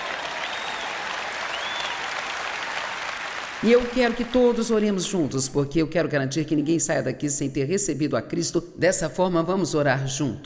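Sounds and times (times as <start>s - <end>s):
audience applause: 0.0s - 4.8s
speech: 3.6s - 10.4s.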